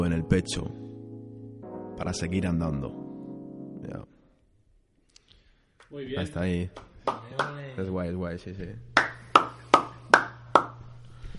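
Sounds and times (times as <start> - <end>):
speech: 0.0 - 0.8, 2.0 - 3.0, 3.8 - 4.1, 5.9 - 9.1
hand clapping with reverb effect: 6.7 - 7.6, 9.0 - 10.8.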